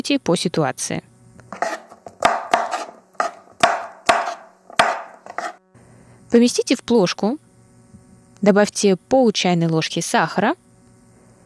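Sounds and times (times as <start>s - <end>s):
speech: 0.0s - 1.7s, 6.3s - 7.4s, 8.4s - 10.6s
knife chopping cucumbers: 1.5s - 5.6s.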